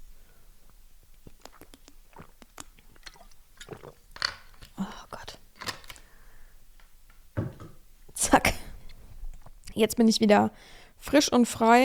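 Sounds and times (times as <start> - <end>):
person sipping water and swallowing: 1.1 - 4.8
speech: 9.8 - 11.8.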